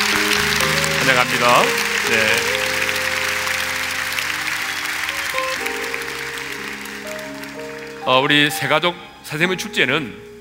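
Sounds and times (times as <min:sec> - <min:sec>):
large crowd applauding to welcome newcomers: 0:00.0 - 0:09.0
soft sustained instrumental music: 0:00.0 - 0:10.3
speech: 0:01.1 - 0:02.6, 0:08.0 - 0:10.3.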